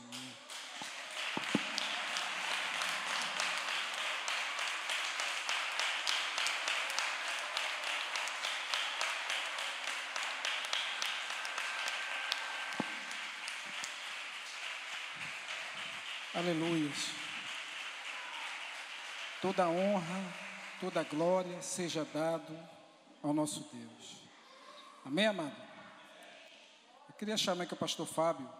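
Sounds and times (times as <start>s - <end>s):
audience applause: 0.0s - 21.5s
speech: 16.4s - 17.2s, 19.4s - 24.2s, 25.0s - 25.6s, 27.2s - 28.5s.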